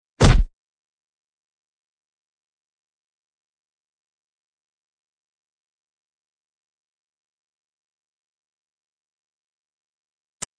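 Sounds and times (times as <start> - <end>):
fight sounds: 0.2 - 0.5.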